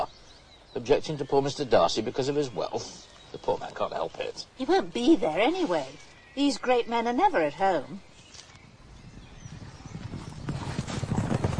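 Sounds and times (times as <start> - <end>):
speech: 0.7 - 8.1
horse hooves clip-clopping: 8.4 - 11.5
horse-drawn carriage rumble and clatter: 9.3 - 11.5.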